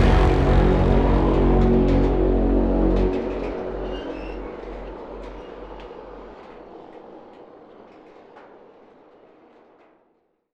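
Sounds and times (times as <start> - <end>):
music track in F sharp: 0.0 - 5.8.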